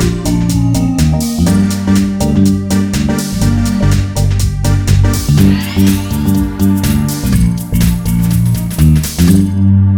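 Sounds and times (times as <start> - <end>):
blues rock music in G minor: 0.0 - 9.8.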